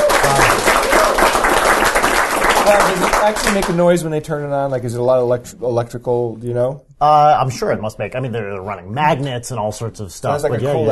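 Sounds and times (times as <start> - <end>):
applause: 0.0 - 3.8
speech: 2.7 - 10.9.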